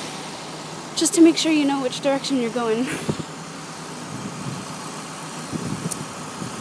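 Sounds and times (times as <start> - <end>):
big truck behind the car: 0.0 - 6.5
speech: 1.0 - 3.2.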